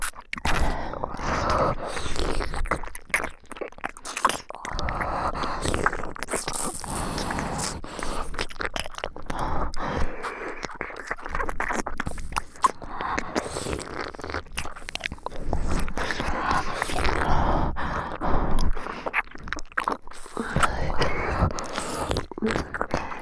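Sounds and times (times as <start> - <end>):
ear licking ASMR loop: 0.0 - 23.2.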